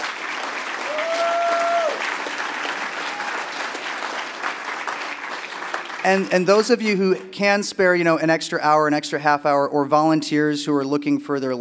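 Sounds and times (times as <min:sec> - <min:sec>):
audience applause: 0:00.0 - 0:06.6
speech: 0:06.0 - 0:11.5.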